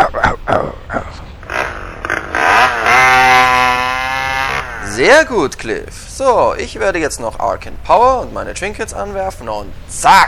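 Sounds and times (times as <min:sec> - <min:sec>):
chainsaw revving: 0:01.4 - 0:05.4
speech: 0:05.1 - 0:10.2.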